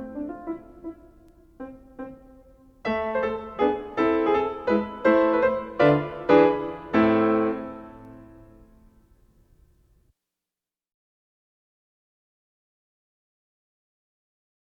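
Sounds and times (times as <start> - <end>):
classical sonatina in A minor: 0.0 - 9.8.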